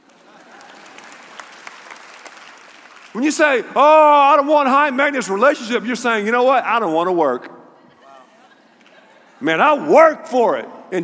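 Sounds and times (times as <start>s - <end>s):
audience clapping: 0.0s - 3.7s
speech: 3.1s - 7.6s, 9.4s - 11.0s
laughter: 7.8s - 9.9s.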